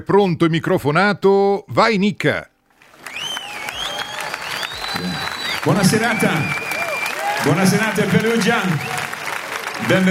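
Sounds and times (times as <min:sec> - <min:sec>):
speech: 0:00.0 - 0:02.5, 0:05.6 - 0:06.6, 0:07.4 - 0:09.0, 0:09.8 - 0:10.0
audience applause in the Arena Santa Giuliana in Perugia: 0:02.8 - 0:10.0.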